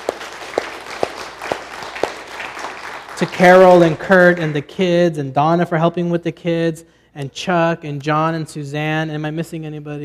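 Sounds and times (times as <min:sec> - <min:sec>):
audience applause: 0:00.0 - 0:04.6
speech: 0:03.2 - 0:10.0.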